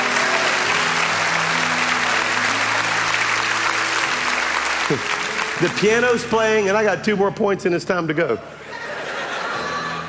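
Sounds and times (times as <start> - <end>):
audience clapping hands: 0.0 - 7.1
speech: 4.9 - 8.6
laughter: 8.5 - 10.0.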